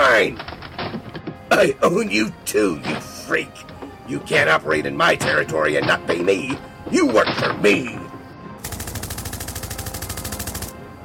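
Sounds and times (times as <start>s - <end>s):
speech: 0.2s - 0.6s, 1.6s - 8.0s
rapid automatic gunfire in a dramatized street confrontation: 8.6s - 10.8s.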